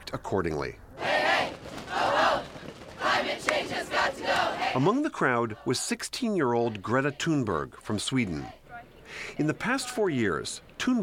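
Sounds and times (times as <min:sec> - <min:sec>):
speech: 0:00.1 - 0:00.8, 0:03.6 - 0:11.0
steady wash of crowd noise: 0:00.9 - 0:11.0
crowd of young protesters chanting: 0:01.0 - 0:05.8, 0:06.8 - 0:07.5.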